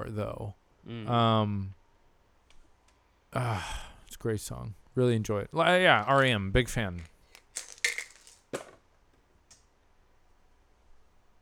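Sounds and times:
speech: 0:00.1 - 0:01.8, 0:03.3 - 0:07.1
dice being rolled: 0:07.0 - 0:08.9.

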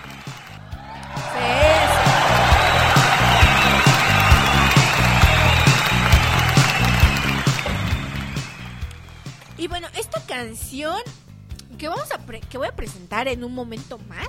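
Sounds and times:
applause: 0:00.0 - 0:10.5
speech: 0:10.4 - 0:11.2, 0:11.8 - 0:14.2.

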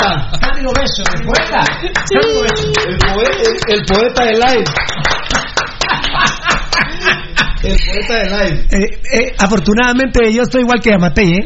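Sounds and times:
hand claps: 0:00.0 - 0:06.9
speech: 0:00.1 - 0:05.2, 0:07.6 - 0:11.4
laughter: 0:01.4 - 0:04.1, 0:04.9 - 0:08.6.

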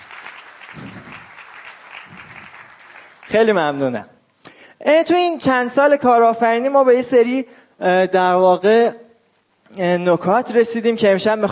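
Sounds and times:
audience applause: 0:00.0 - 0:03.8
speech: 0:03.3 - 0:04.1, 0:04.8 - 0:09.0, 0:09.7 - 0:11.5.

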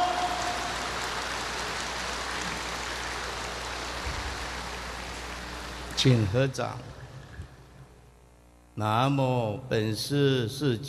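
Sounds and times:
audience applause: 0:00.0 - 0:06.2
speech: 0:06.0 - 0:07.0, 0:08.8 - 0:10.8.

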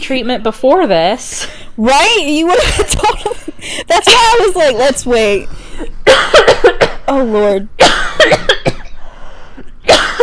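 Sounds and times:
speech: 0:00.1 - 0:06.5, 0:07.1 - 0:08.4
harsh rasping coughing: 0:06.0 - 0:07.1, 0:07.8 - 0:09.0, 0:09.6 - 0:10.2.

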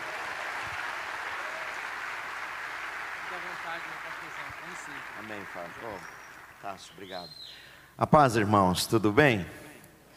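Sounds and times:
audience applauding: 0:00.0 - 0:07.3
speech: 0:03.6 - 0:09.6.

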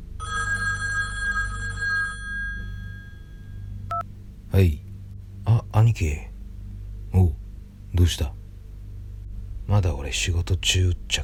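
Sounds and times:
telephone ringing: 0:00.2 - 0:04.0
speech: 0:04.6 - 0:04.8, 0:05.8 - 0:06.3, 0:08.0 - 0:08.4, 0:09.7 - 0:11.2.

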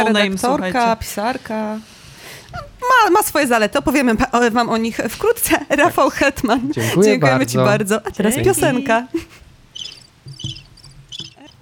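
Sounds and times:
speech: 0:00.0 - 0:09.4
low hum: 0:00.4 - 0:11.6
laughter: 0:06.6 - 0:09.4
birds chirping: 0:08.0 - 0:11.6.

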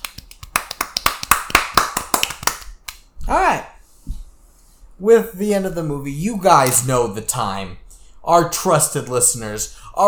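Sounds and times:
one person clapping: 0:00.0 - 0:03.0
speech: 0:03.3 - 0:03.7, 0:05.0 - 0:10.0.

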